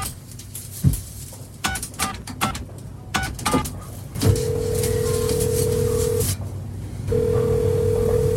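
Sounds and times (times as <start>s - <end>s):
clunks and clicks of a handset being lifted: 1.6s - 4.5s
old public phone booth dial tone: 4.3s - 6.3s, 7.1s - 8.3s.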